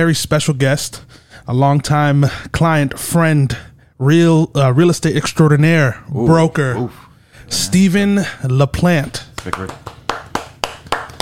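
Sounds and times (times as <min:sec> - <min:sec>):
speech: 0:00.0 - 0:09.9
hands clapping in welcome: 0:09.0 - 0:11.2.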